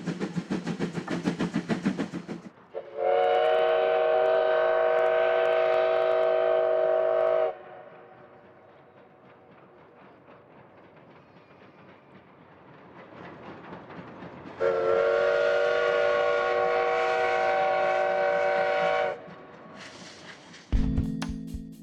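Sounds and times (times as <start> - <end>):
hiss and clank: 0.0 - 2.6, 7.9 - 20.8
steam train rumbling and chuffing: 0.0 - 21.8
steam locomotive whistle on Oigawa Railway main line: 2.7 - 8.2, 14.6 - 19.3.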